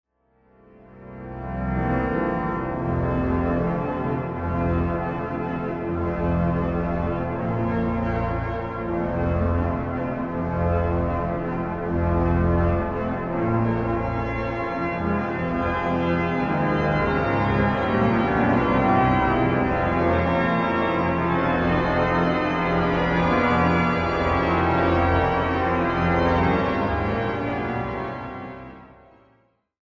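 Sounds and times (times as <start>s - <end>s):
organ piece: 0.8s - 29.2s.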